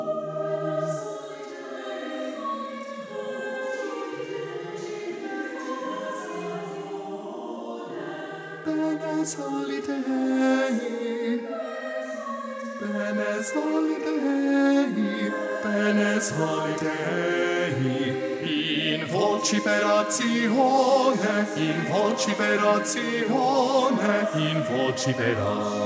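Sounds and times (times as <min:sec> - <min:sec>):
choirs singing: 0:00.0 - 0:25.8
bass voices singing: 0:12.2 - 0:25.8.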